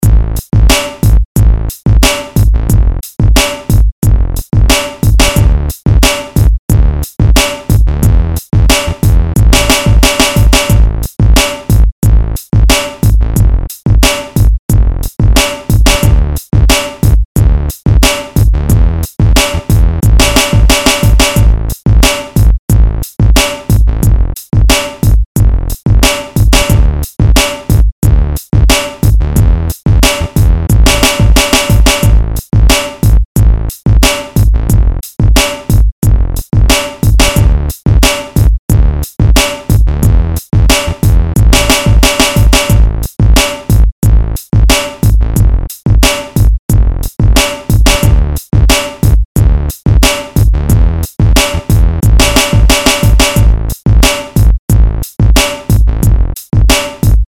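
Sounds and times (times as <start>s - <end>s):
gangsta instrumental beat: 0.0s - 57.2s.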